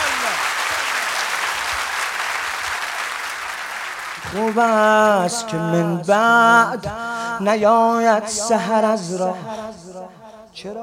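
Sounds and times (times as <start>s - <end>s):
crowd clapping during a Persian verse recitation: 0.0s - 5.7s
speech: 4.3s - 10.8s.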